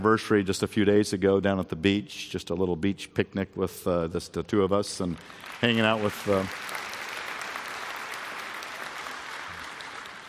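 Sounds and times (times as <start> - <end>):
speech: 0.0 - 6.8
audience applause: 5.0 - 10.2.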